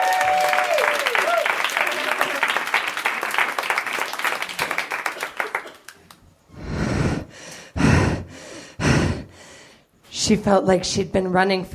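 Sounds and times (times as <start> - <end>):
audience applause for a comedian at a comedy show: 0.0 - 6.2
heavy breathy gasps: 6.5 - 9.9
speech: 10.3 - 11.7.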